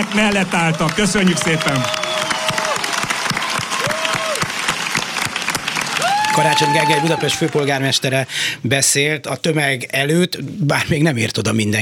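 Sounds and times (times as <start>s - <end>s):
speech: 0.0s - 2.1s, 6.4s - 11.8s
large crowd applauding: 0.0s - 8.2s
rising-and-falling whistles: 1.5s - 2.7s.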